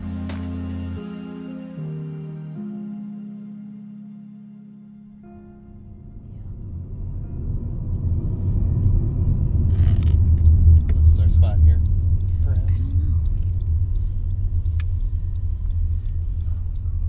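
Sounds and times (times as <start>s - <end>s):
car driving along a road in rural Lake County: 5.2s - 17.0s.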